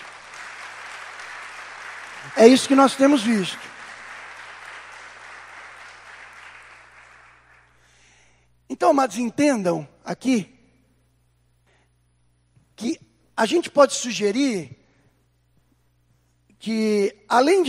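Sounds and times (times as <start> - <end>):
audience applause: 0.0 - 7.8
speech: 2.2 - 3.8, 8.9 - 10.5, 12.8 - 14.8, 16.6 - 17.6.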